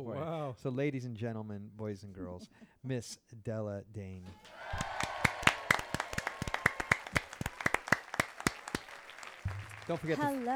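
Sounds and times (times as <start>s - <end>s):
speech: 0.0s - 4.9s, 9.9s - 10.5s
audience applause: 4.4s - 10.5s.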